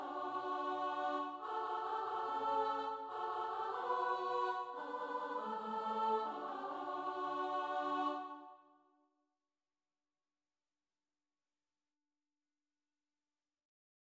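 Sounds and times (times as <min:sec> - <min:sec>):
soprano and alto voices: 0:00.0 - 0:08.5.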